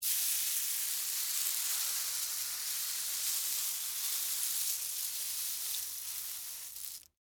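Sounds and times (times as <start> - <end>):
corn flakes cereal moving: 0.0 - 7.2.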